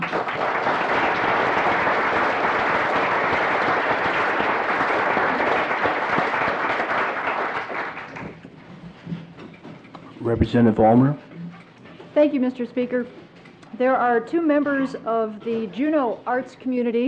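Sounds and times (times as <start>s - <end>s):
audience applause welcoming guests in a legislative chamber: 0.0s - 8.5s
speech: 10.4s - 11.2s, 12.2s - 13.2s, 13.8s - 17.0s.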